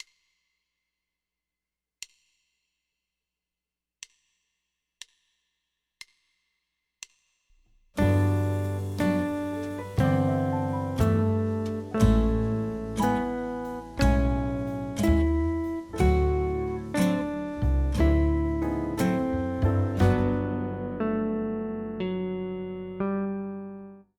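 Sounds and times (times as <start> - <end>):
guitar: 8.0 - 24.0.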